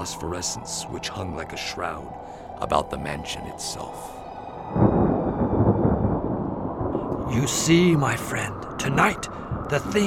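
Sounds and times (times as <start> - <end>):
speech: 0.0 - 4.9, 7.3 - 10.0
thunder rumbling during a storm: 0.0 - 10.0.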